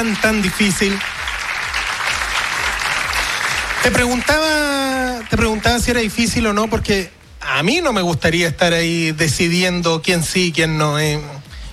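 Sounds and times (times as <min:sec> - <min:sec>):
speech: 0:00.0 - 0:01.1, 0:03.8 - 0:11.5
sustained audience applause: 0:00.0 - 0:06.0
low rhythmic thump: 0:01.1 - 0:11.7.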